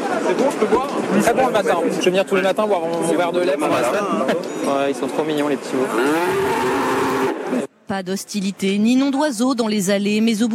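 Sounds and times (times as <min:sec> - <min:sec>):
speech: 0:00.3 - 0:07.2, 0:07.9 - 0:10.5
cow mooing during milking: 0:05.9 - 0:07.4.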